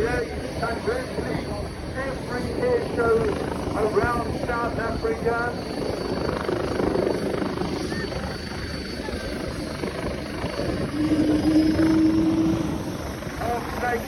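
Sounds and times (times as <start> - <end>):
BK helicopter flying at an air show: 0.0 - 14.0
speech: 2.9 - 6.1.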